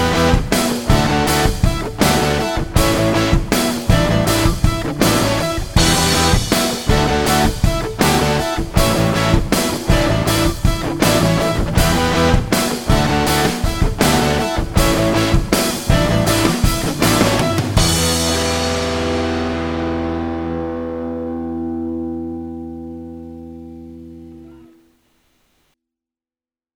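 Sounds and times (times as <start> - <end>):
rock guitar: 0.0 - 24.8.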